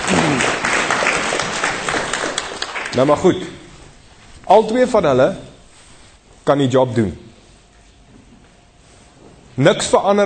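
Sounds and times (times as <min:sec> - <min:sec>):
audience applause: 0:00.0 - 0:03.4
speech: 0:03.0 - 0:03.6, 0:04.5 - 0:05.5, 0:06.4 - 0:07.2, 0:09.6 - 0:10.2.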